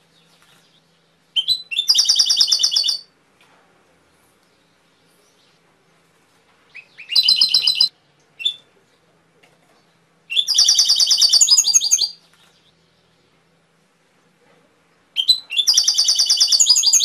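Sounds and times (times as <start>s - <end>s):
canary singing trilled phrases: 1.4s - 3.1s, 6.8s - 8.6s, 10.3s - 12.2s, 15.2s - 17.0s.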